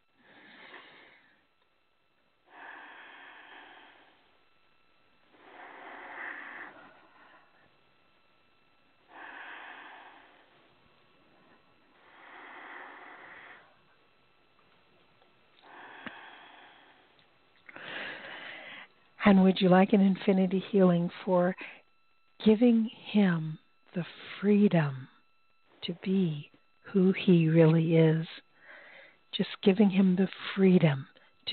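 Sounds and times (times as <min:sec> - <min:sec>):
slow deep breathing during a guided healing session: 0:00.0 - 0:01.6, 0:02.4 - 0:07.9, 0:08.5 - 0:14.0, 0:15.5 - 0:19.1, 0:28.4 - 0:29.3
speech: 0:19.2 - 0:21.8, 0:22.4 - 0:25.1, 0:25.8 - 0:28.5, 0:29.3 - 0:31.5.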